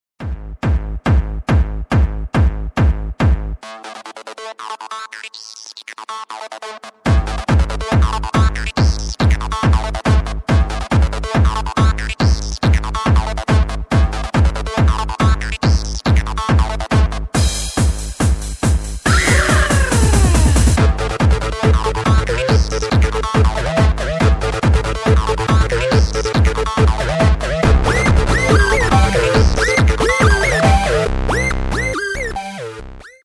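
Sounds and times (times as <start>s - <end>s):
Tecktonik electro dance music: 0.2s - 33.2s.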